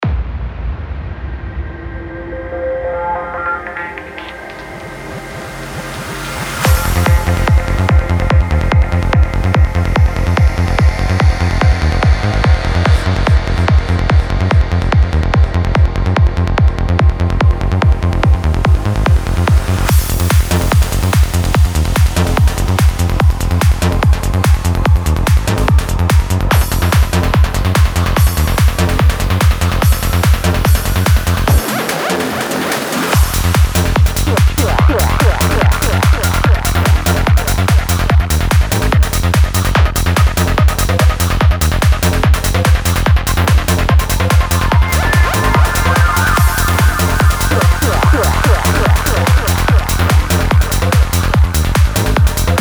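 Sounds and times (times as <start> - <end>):
psy trance music: 1.2 - 52.6.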